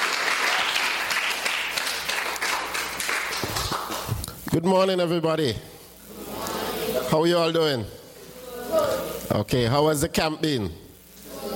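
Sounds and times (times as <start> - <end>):
round of applause: 0.0 - 4.2
speech: 4.5 - 5.7, 7.1 - 8.0, 8.7 - 10.8.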